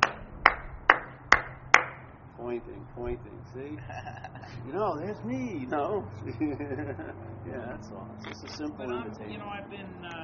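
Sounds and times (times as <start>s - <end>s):
sharp hand claps: 0.0s - 2.1s
speech: 2.4s - 10.2s
laughter: 3.4s - 9.2s.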